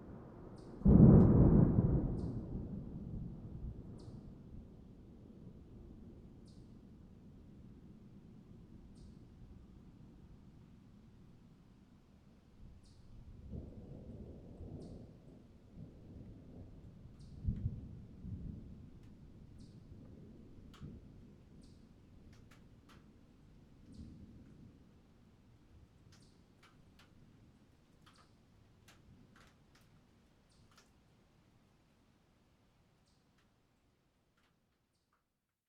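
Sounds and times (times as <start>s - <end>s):
thunderstorm: 0.0s - 8.8s, 13.2s - 21.5s.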